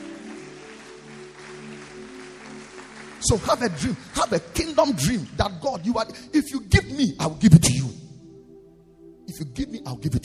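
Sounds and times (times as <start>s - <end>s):
audience clapping hands: 0.0s - 6.2s
sustained organ-like chord: 0.0s - 10.2s
speech: 3.2s - 8.0s, 9.4s - 10.2s.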